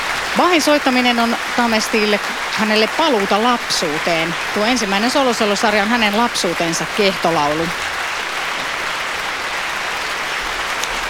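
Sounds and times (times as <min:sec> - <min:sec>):
audience applause after concert performance: 0:00.0 - 0:11.0
speech: 0:00.4 - 0:08.0.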